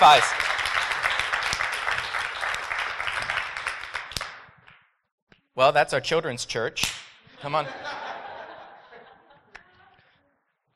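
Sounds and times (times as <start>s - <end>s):
speech: 0.0s - 0.5s, 5.6s - 8.0s
round of applause: 0.0s - 4.5s.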